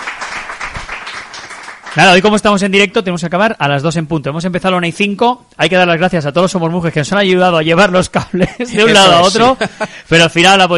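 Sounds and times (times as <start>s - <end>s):
audience applause: 0.0s - 2.2s
speech: 2.0s - 10.7s
laughter: 8.3s - 10.1s.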